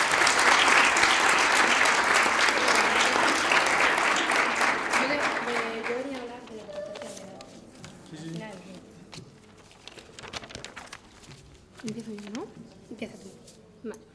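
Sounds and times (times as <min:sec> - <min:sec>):
audience applause: 0:00.0 - 0:06.4.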